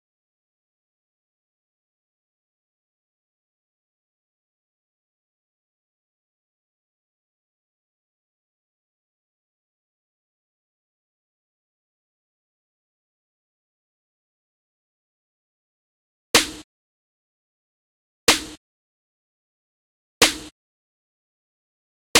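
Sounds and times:
snare noise: 0:16.4 - 0:16.6, 0:18.3 - 0:18.6, 0:20.2 - 0:20.5.

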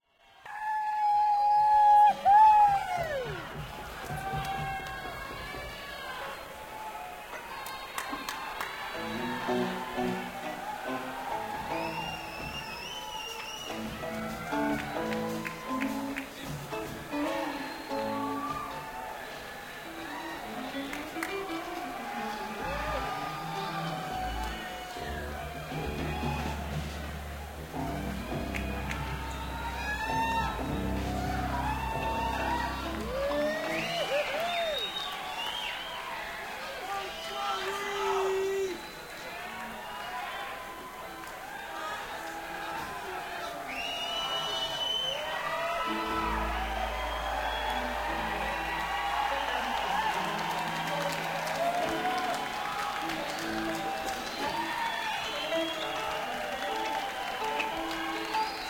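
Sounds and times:
crowd: 0:00.0 - 0:58.6.

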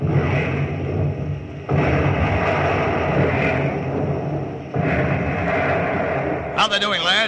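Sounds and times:
naval gunfire salvo: 0:00.0 - 0:07.1.

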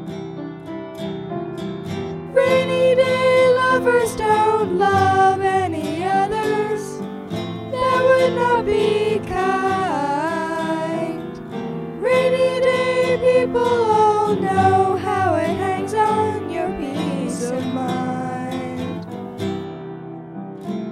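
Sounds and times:
guitar: 0:00.0 - 0:20.9
piano: 0:00.0 - 0:20.9
person singing: 0:02.3 - 0:07.1, 0:07.7 - 0:19.1.

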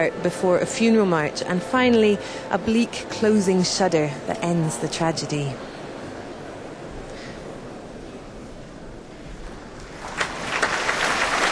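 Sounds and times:
speech: 0:00.0 - 0:05.7
concert audience applause for the orchestra leader: 0:09.8 - 0:11.4.

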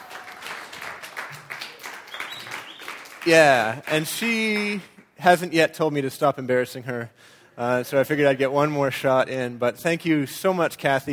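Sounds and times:
audience round of applause: 0:00.0 - 0:04.8
speech: 0:03.2 - 0:11.1.

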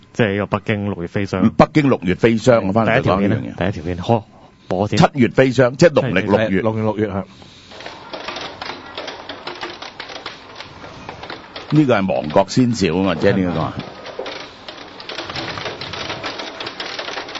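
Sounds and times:
speech: 0:00.2 - 0:07.5, 0:11.7 - 0:13.9
hail falling: 0:07.7 - 0:17.3.

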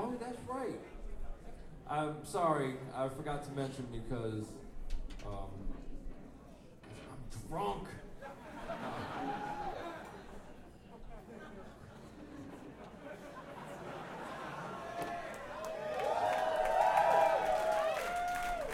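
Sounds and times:
speech: 0:00.5 - 0:01.0, 0:01.9 - 0:05.8, 0:07.4 - 0:08.0
laughter: 0:08.2 - 0:15.8
audience cheering with whoops and shouts: 0:08.8 - 0:10.1, 0:13.9 - 0:18.7
audience applause: 0:14.2 - 0:18.7.

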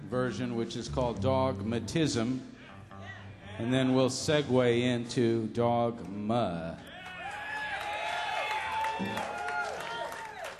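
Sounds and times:
speech: 0:00.1 - 0:02.5, 0:03.6 - 0:06.9, 0:09.0 - 0:09.4
audience applause: 0:06.9 - 0:10.5.

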